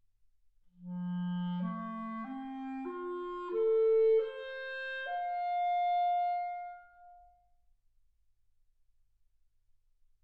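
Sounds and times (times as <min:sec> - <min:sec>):
clarinet: 0:00.8 - 0:07.4.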